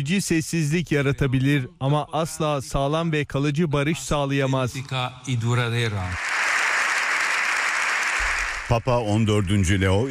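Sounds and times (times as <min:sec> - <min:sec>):
speech: 0:00.0 - 0:06.3, 0:08.7 - 0:10.0
standing ovation for Pope Leo XIV in Spain's parliament: 0:06.0 - 0:10.0.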